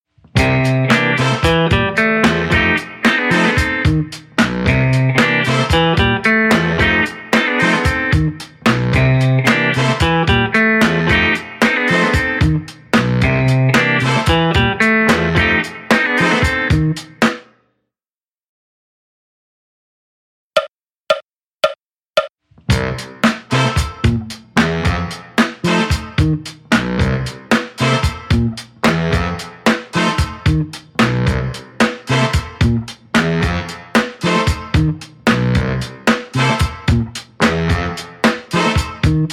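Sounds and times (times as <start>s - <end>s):
RnB guitar: 0.3s - 17.2s, 22.7s - 39.3s.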